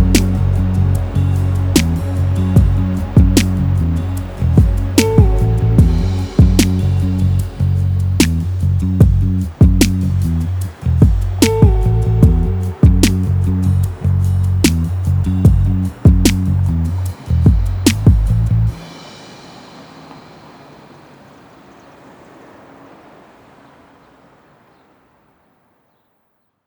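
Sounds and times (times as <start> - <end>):
acoustic version of a song: 0.0 - 19.2.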